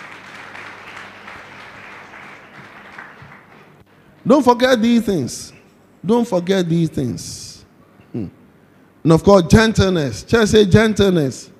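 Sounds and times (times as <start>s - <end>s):
audience applause: 0.0s - 3.8s
speech: 4.3s - 7.5s, 8.1s - 8.4s, 9.0s - 11.5s.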